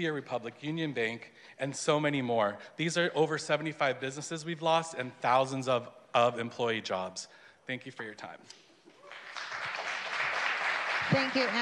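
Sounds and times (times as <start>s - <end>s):
speech: 0.0s - 8.6s, 11.1s - 11.6s
audience clapping: 8.9s - 11.6s.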